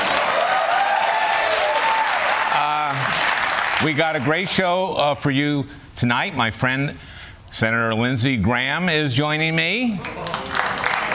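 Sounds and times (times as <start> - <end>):
audience applause: 0.0 - 4.5, 10.0 - 11.1
speech: 3.8 - 10.3.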